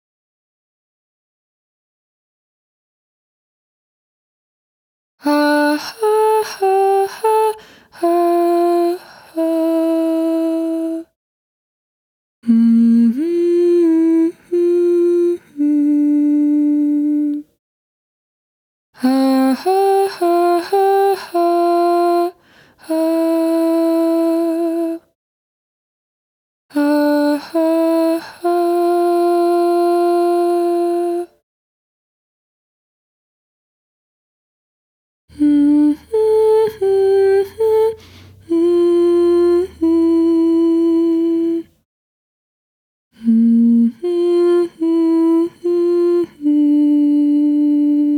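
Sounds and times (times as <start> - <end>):
intro cue vocals: 5.2 - 11.2, 12.4 - 17.6, 19.0 - 25.2, 26.7 - 31.4, 35.3 - 41.9, 43.1 - 48.1.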